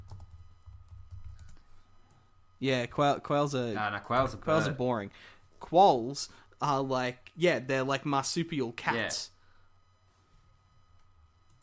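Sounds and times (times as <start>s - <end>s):
keyboard typing a web search: 0.0s - 2.2s
speech: 2.6s - 9.4s.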